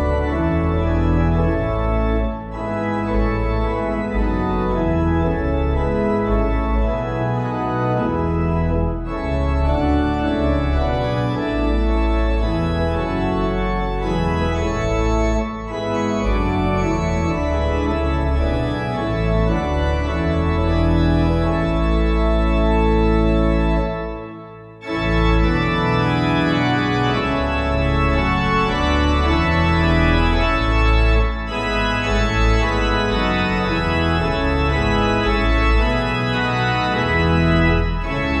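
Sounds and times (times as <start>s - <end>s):
organ: 0.0s - 38.3s.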